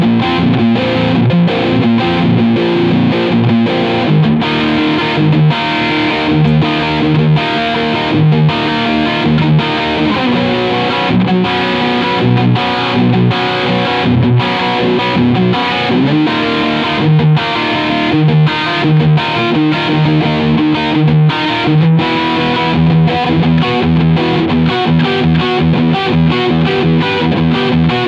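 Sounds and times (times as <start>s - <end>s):
Solar Guitars GC1.6FAB electric guitar riff on bridge humbucker: 0.0s - 28.0s.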